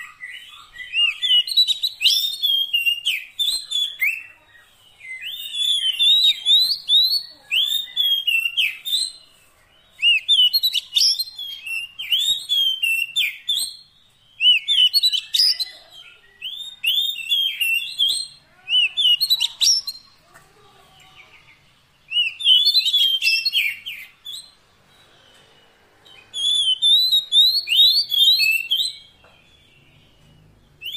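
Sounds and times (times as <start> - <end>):
Oriental magpie-robin whistling song: 0.0 - 20.2, 22.0 - 30.9.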